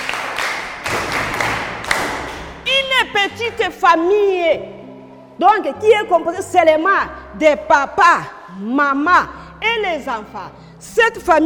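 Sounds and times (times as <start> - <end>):
applause from pupils in a French-speaking classroom: 0.0 - 2.7
speech: 3.2 - 4.8, 5.4 - 11.4.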